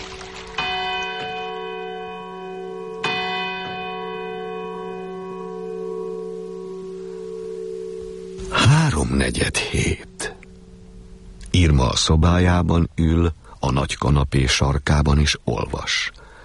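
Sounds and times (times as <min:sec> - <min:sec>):
church bell striking three o'clock: 0:00.6 - 0:11.5
speech: 0:08.6 - 0:10.1, 0:11.8 - 0:16.2.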